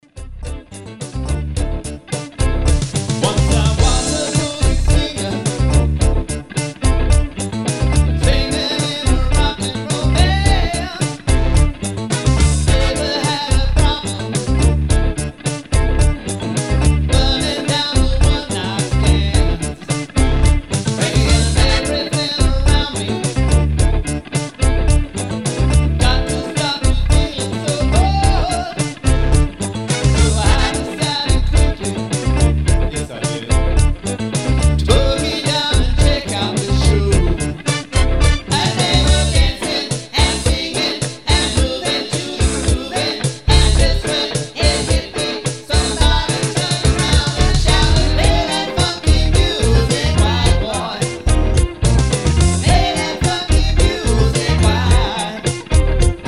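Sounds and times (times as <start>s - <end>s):
funky music: 0.0s - 56.2s.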